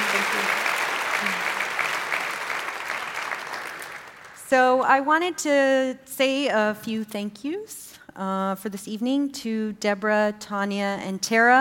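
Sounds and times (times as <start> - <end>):
crowd applauding: 0.0 - 4.5
speech: 4.5 - 11.6.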